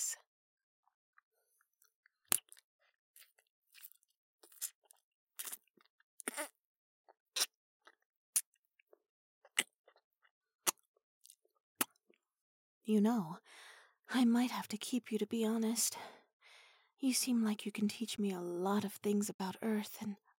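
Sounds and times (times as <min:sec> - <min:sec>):
creature chewing a human: 0:02.1 - 0:06.6
speech: 0:12.9 - 0:13.5, 0:14.1 - 0:16.2, 0:17.0 - 0:20.2.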